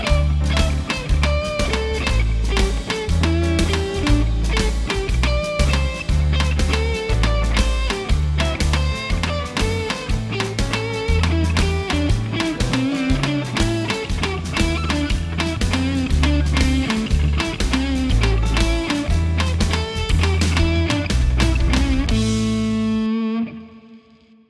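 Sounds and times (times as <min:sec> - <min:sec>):
drum hits: 0:00.0 - 0:23.0
claves playing blues rhythm: 0:00.0 - 0:23.9.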